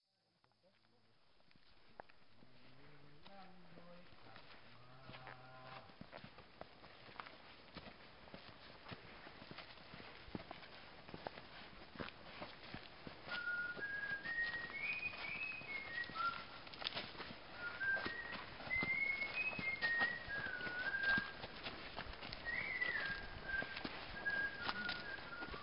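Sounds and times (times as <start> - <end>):
footsteps on a mountain trail in Namtok Mae Surin National Park: 0.7 - 25.6
guide singing or humming: 4.8 - 5.9
guide whistling a tune: 13.3 - 16.6, 17.5 - 21.4, 22.4 - 25.6.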